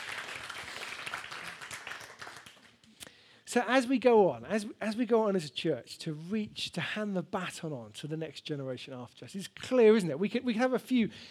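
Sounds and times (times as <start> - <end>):
audience clapping: 0.0 - 2.9
speech: 3.6 - 11.2.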